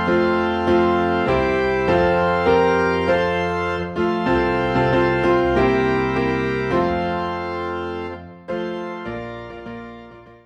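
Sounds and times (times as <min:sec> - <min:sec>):
organ in F: 0:00.0 - 0:10.4
piano in F: 0:00.0 - 0:10.4.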